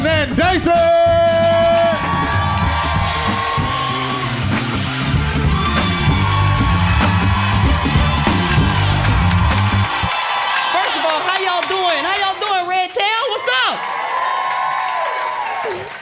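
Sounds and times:
speech: 0:00.3 - 0:01.2
crowd cheering and whooping at a live show at Resorts World in Las Vegas: 0:01.4 - 0:15.9
scattered shouts from crowd: 0:01.6 - 0:12.4.

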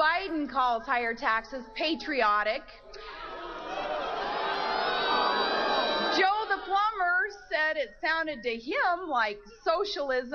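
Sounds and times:
speech: 0:00.5 - 0:03.0, 0:06.2 - 0:10.3
rally crowd cheering and applauding: 0:03.0 - 0:07.2
whoops: 0:03.0 - 0:07.6.

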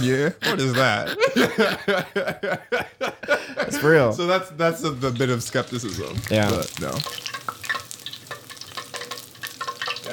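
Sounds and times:
laughter: 0:00.0 - 0:04.1
speech: 0:00.0 - 0:07.4
beignets frying in bubbling oil: 0:04.7 - 0:10.1.

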